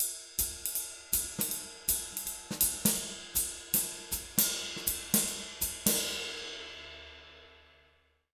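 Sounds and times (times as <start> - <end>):
jazz Latin swing drum loop at 160 bpm: 0.0 - 6.5.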